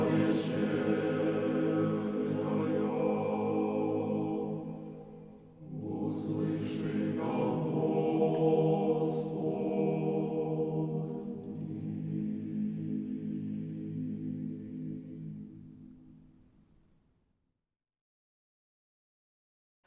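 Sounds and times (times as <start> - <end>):
choir singing: 0.0 - 15.9.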